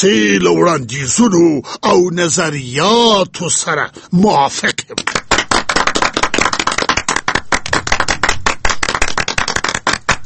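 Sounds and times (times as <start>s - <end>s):
speech: 0.0s - 5.2s
group of people clapping hands: 4.9s - 10.2s.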